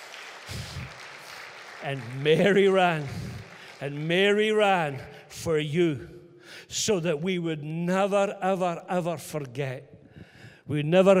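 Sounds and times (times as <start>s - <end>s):
crowd applause: 0.0s - 4.6s
speech: 1.8s - 10.0s, 10.7s - 11.1s.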